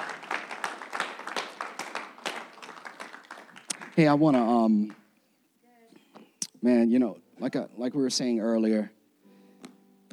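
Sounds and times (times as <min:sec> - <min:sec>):
audience clapping hands in praise: 0:00.0 - 0:05.1
speech: 0:04.0 - 0:05.0, 0:06.6 - 0:09.0.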